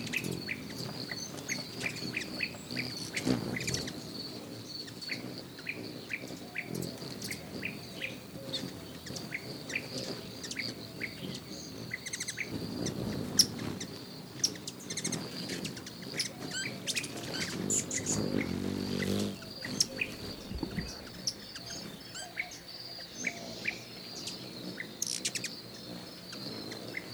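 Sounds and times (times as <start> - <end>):
bird calls: 0.0 - 27.1
high insect drone: 0.0 - 27.1.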